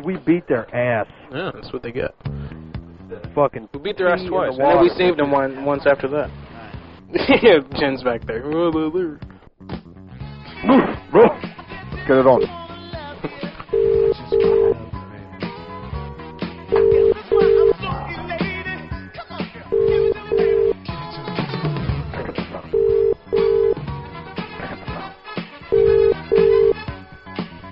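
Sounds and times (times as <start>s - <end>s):
speech: 0.0s - 2.4s, 3.1s - 6.4s, 7.1s - 9.8s, 10.6s - 12.6s
telephone beeping in pairs of short tones: 13.7s - 14.8s, 16.7s - 17.8s, 19.7s - 20.8s, 22.7s - 23.8s, 25.7s - 26.9s.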